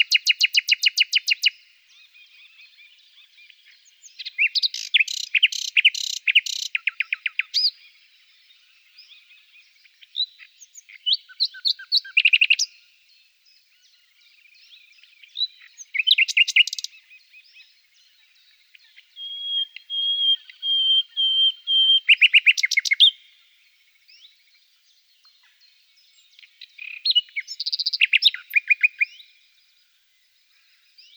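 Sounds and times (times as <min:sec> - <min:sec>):
common nightingale song: 0:00.0 - 0:31.1
faint other birds singing: 0:00.0 - 0:31.1.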